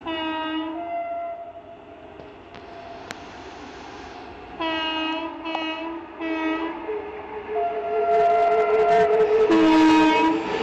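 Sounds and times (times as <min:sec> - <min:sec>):
Renfe MELCO 269 train horn: 0:00.0 - 0:01.8, 0:04.6 - 0:10.5.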